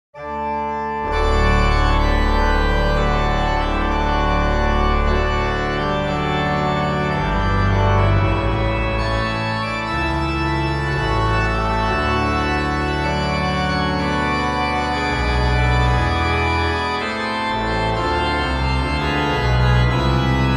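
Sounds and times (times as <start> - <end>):
Organteq organ: 0.2 - 20.5.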